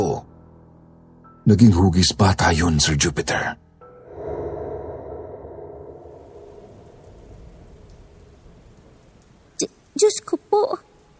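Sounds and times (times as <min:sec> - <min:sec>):
speech: 0:01.5 - 0:03.6
deep rumble of thunder: 0:04.0 - 0:09.9
heavy rain pouring down: 0:05.8 - 0:11.1.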